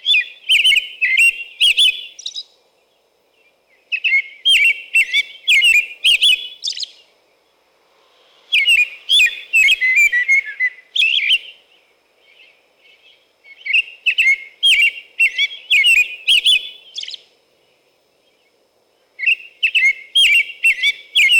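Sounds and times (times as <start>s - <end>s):
American robin whistled caroling phrases: 0.0s - 2.5s, 3.9s - 7.0s, 8.5s - 11.6s, 13.5s - 17.2s, 19.2s - 21.3s.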